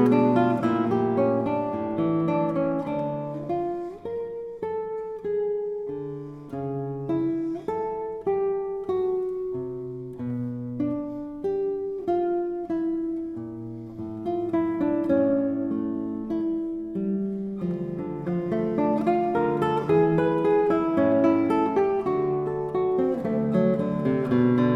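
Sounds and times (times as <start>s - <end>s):
classical guitar piece: 0.0s - 24.7s.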